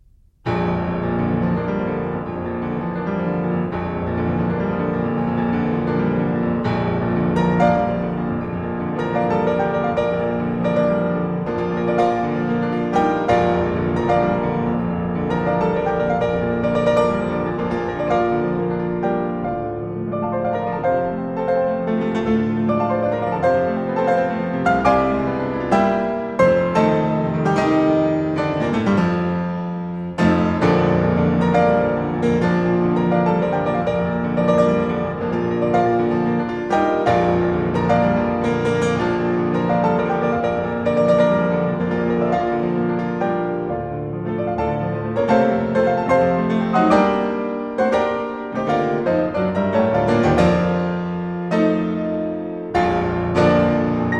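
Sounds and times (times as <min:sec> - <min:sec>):
piano prelude in B flat major: 0:00.0 - 0:54.1.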